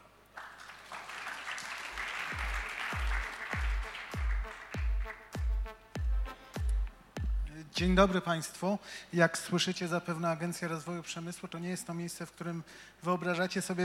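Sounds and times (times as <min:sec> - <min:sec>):
audience applause: 0:00.3 - 0:05.3
deep thumping beat: 0:02.3 - 0:08.2
speech: 0:07.8 - 0:13.8.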